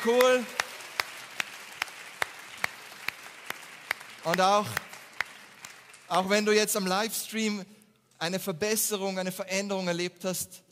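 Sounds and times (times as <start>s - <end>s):
speech: 0.0s - 0.6s, 4.2s - 4.9s, 6.1s - 10.6s
audience clapping in unison: 0.0s - 7.2s.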